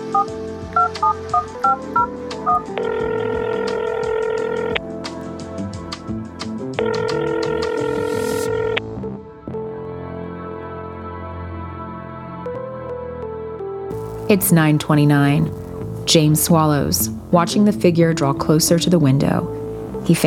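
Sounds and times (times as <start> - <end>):
touch-tone phone number being dialed: 0.0 - 4.8, 6.8 - 8.8
speech: 14.3 - 20.2.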